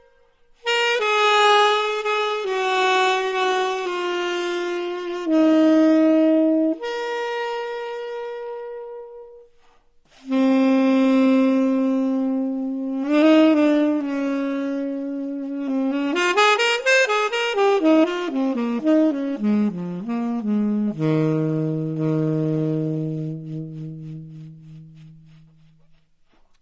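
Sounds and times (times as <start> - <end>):
solo saxophone: 0.0 - 26.6.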